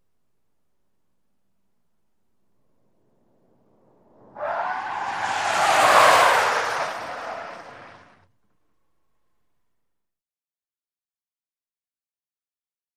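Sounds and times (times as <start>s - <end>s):
small compact car accelerating: 2.6s - 8.3s
small compact car tyres skidding: 2.7s - 8.2s.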